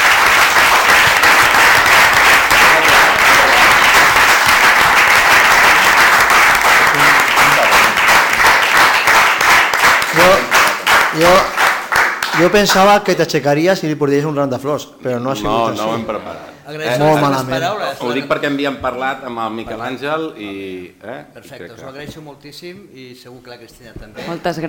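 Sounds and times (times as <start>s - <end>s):
crowd applauding: 0.0s - 13.0s
speech: 11.2s - 11.5s, 12.4s - 24.6s.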